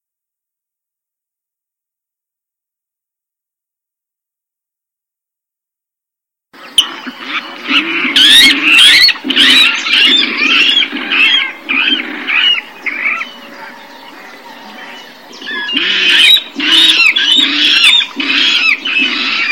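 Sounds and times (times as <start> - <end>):
water rail Rallus aquaticus calling: 6.8 - 19.5.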